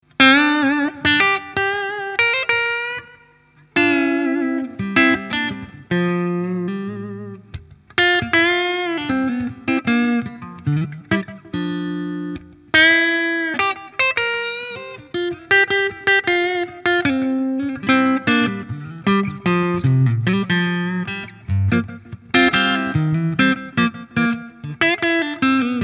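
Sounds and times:
clean Framus Idolmaker electric guitar on neck pickup: 0:00.0 - 0:25.8.

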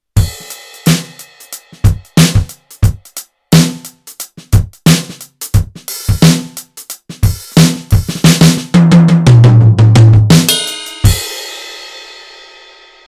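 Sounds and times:
Roland TD-4KP electronic drum kit: 0:00.2 - 0:11.8.

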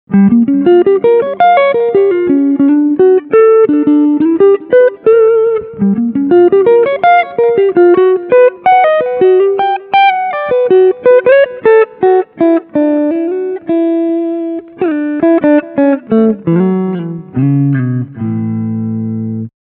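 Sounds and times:
electric guitar melody line on front pickup: 0:00.1 - 0:19.5.

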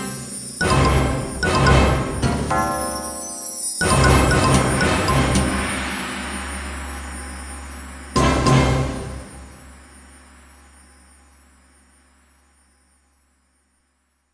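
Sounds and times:
orchestral kit: 0:00.0 - 0:06.4, 0:08.2 - 0:09.6.

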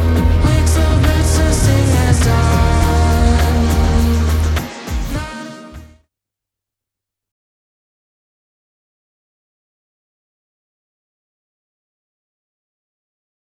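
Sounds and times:
trip hop vocal beat: 0:00.0 - 0:05.9.

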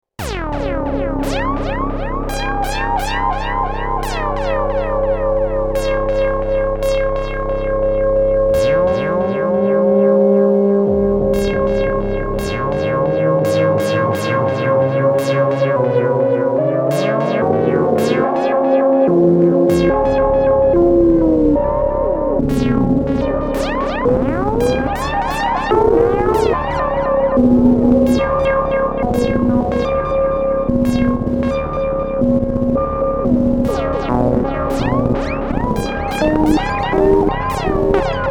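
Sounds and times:
experimental music with modulated echo: 0:00.2 - 0:38.2.

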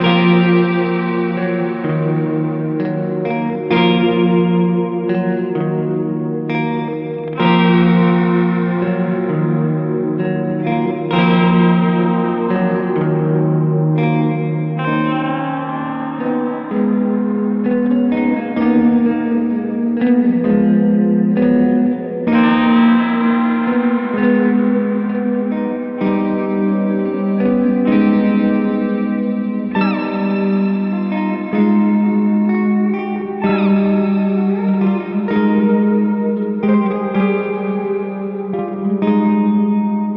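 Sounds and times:
symmetry reverb: 0:00.0 - 0:40.1.

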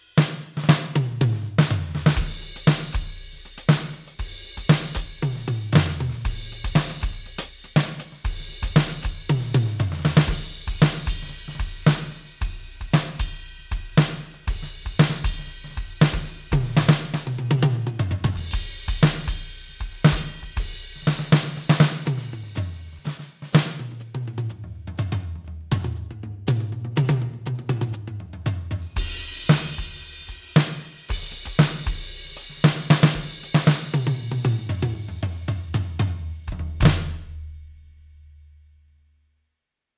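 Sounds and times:
1970s rock drum kit: 0:00.0 - 0:37.6.

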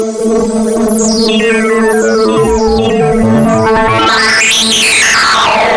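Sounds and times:
remix synth pad: 0:00.1 - 0:05.6.

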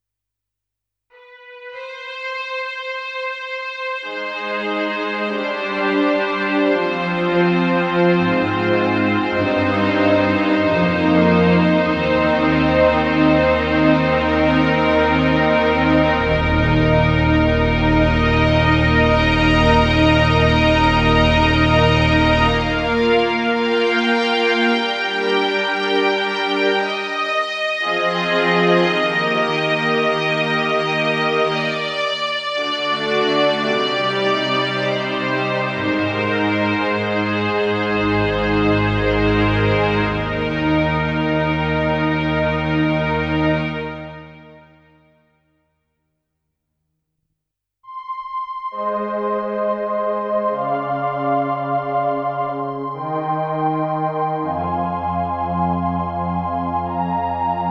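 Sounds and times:
strings: 0:01.2 - 0:44.6, 0:47.9 - 0:57.6.

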